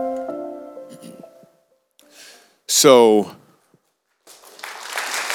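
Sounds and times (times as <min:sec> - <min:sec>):
speech: 0:02.8 - 0:03.4
audience clapping: 0:04.2 - 0:05.3.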